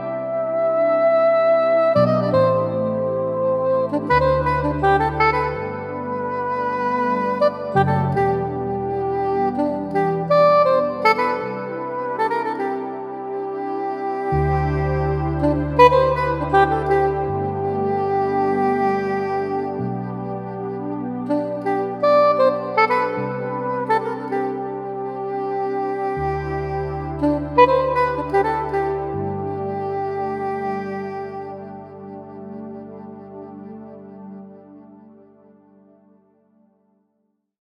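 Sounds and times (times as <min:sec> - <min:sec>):
soprano saxophone on a digital piano: 0:00.0 - 0:36.2.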